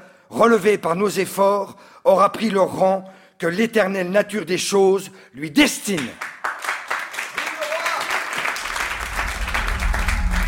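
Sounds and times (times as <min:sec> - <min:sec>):
speech: 0:00.4 - 0:06.3
assembly applause: 0:06.4 - 0:10.4.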